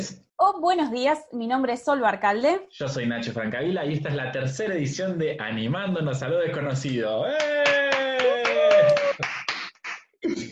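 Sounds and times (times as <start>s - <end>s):
speech: 0.0s - 9.0s
loud rhythmic clapping: 7.3s - 10.5s.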